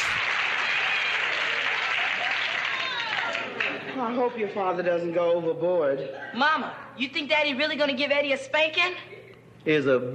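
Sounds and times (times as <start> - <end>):
crowd applauding: 0.0 - 4.0
speech: 4.0 - 10.1.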